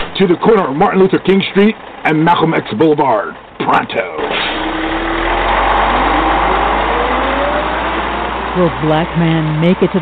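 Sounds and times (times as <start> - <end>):
engine of the Black Mobile car driving off: 0.0 - 10.0
speech: 0.2 - 4.4, 8.6 - 10.0
faint rising whine: 4.5 - 8.8.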